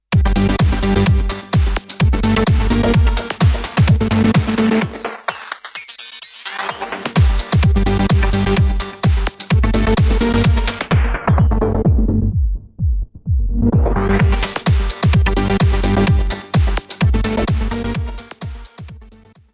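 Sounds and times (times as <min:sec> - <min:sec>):
DJM 350 DJ mixer audio sample: 0:00.1 - 0:04.9, 0:06.8 - 0:18.9.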